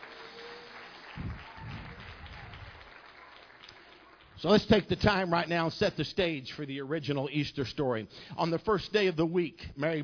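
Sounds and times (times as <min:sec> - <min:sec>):
audience hand clapping: 0:00.0 - 0:05.3
speech: 0:04.4 - 0:10.0.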